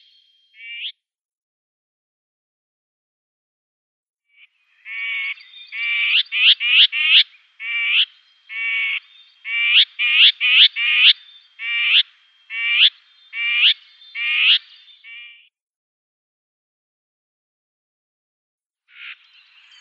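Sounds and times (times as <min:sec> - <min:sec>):
common whitethroat giving harsh buzzy calls: 0:04.9 - 0:15.4.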